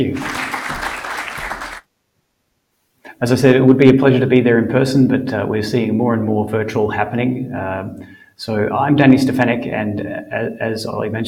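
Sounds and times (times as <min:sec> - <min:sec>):
speech: 0:00.0 - 0:00.4, 0:03.2 - 0:11.2
audience applause: 0:00.0 - 0:01.8.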